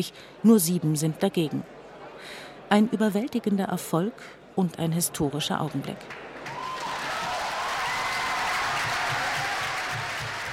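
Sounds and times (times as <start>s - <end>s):
speech: 0.0s - 6.3s
delegates applauding: 6.0s - 10.5s
delegates cheering: 6.4s - 10.5s.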